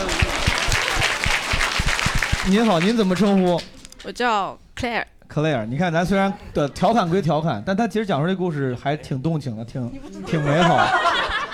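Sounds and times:
laughter: 0.0 - 1.3, 10.0 - 11.5
audience applause: 0.0 - 3.7
speech: 2.4 - 11.1.

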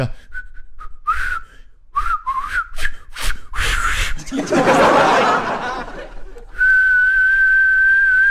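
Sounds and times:
person imitating a wolf whistle: 0.0 - 4.2, 6.5 - 8.2
breathy laughter: 4.2 - 6.4.

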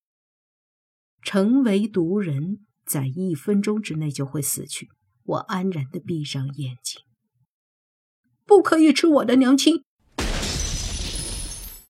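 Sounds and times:
speech: 1.2 - 7.1, 8.5 - 9.9
glass shattering: 10.2 - 11.8.

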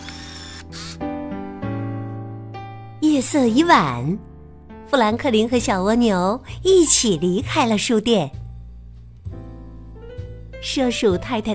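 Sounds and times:
camera shutter taking photos: 0.0 - 1.0
speech: 3.1 - 4.3, 4.9 - 8.4, 10.6 - 11.5.

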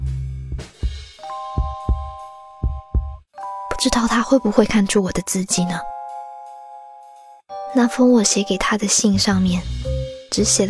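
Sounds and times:
pounding heartbeat: 1.5 - 3.2
speech: 3.8 - 6.0, 7.7 - 10.6.

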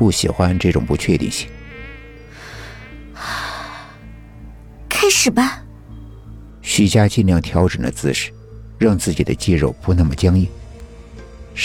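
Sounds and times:
speech: 0.0 - 1.6, 5.1 - 5.6, 6.6 - 10.6
mosquito buzzing: 0.0 - 6.6.

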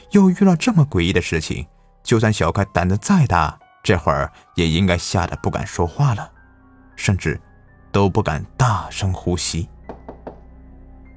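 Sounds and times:
speech: 0.1 - 6.4, 7.0 - 9.7
knocking on a door: 9.8 - 10.5.

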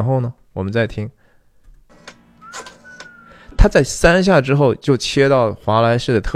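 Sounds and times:
speech: 0.0 - 1.2, 3.6 - 6.3
rotary telephone being dialled: 1.9 - 3.5.

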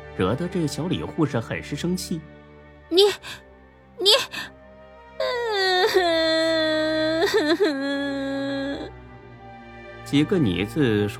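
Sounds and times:
speech: 0.2 - 4.4, 7.3 - 8.3, 10.1 - 11.1
man crying crouched on the floor: 4.0 - 4.5, 5.2 - 8.9.

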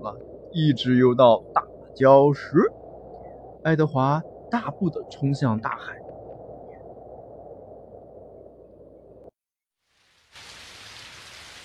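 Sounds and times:
speech: 0.0 - 2.8, 3.6 - 6.0
heavy rain pouring: 10.0 - 11.6.

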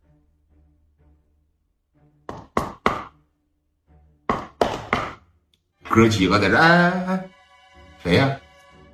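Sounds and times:
knocking on a door: 2.3 - 3.2, 4.3 - 5.2
speech: 6.0 - 7.3, 8.0 - 8.4.

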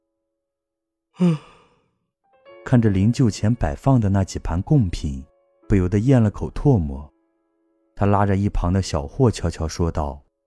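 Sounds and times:
speech: 1.2 - 1.5, 2.7 - 7.1, 8.0 - 10.2
person yawning: 1.2 - 1.8.

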